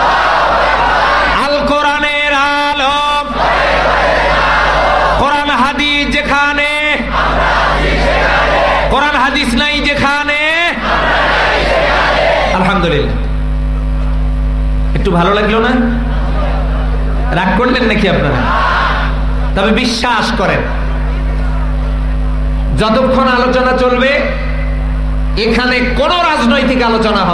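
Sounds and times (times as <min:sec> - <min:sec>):
religious gathering crowd shouting a chant: 0:00.0 - 0:01.4, 0:03.3 - 0:05.2, 0:07.1 - 0:08.9, 0:10.8 - 0:12.6, 0:18.4 - 0:19.2
crowd noise: 0:00.0 - 0:27.3
speech: 0:15.0 - 0:16.0, 0:17.3 - 0:18.6, 0:19.6 - 0:20.8, 0:22.8 - 0:24.4, 0:25.4 - 0:27.3.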